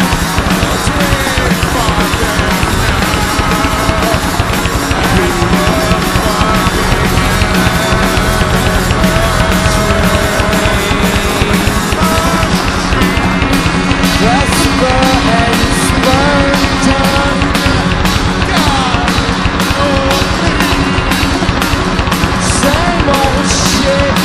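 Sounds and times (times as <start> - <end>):
machine noise: 0.0 - 24.2.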